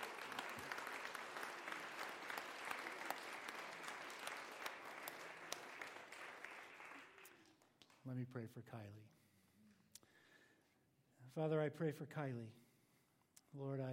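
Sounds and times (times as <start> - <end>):
audience applause: 0.0 - 8.0
speech: 8.0 - 9.2, 11.3 - 12.6, 13.5 - 13.9.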